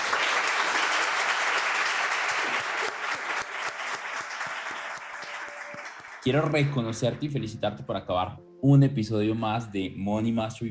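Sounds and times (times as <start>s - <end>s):
applause: 0.0s - 7.2s
speech: 6.2s - 10.6s.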